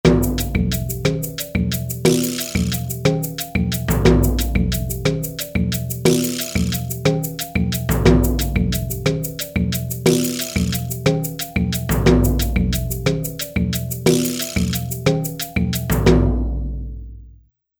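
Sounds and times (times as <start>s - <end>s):
polyrhythmic percussion: 0.0s - 16.8s.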